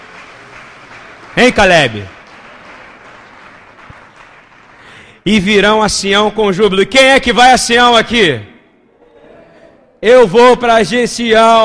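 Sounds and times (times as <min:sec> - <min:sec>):
audience applause: 0:00.0 - 0:05.1
speech: 0:01.4 - 0:02.2, 0:05.2 - 0:08.5, 0:10.0 - 0:11.6.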